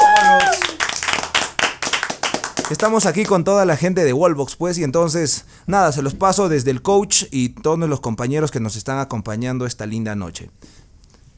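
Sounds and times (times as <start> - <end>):
small group clapping at Wallbox CrossFit gym in Huancayo: 0.0 - 3.4
speech: 2.7 - 10.9.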